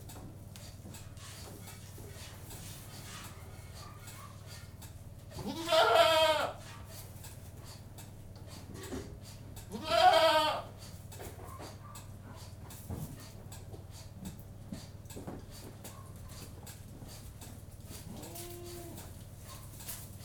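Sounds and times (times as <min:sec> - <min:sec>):
domestic goat bleating in a goat-house: 0:05.3 - 0:06.6, 0:09.6 - 0:10.8, 0:18.0 - 0:19.1.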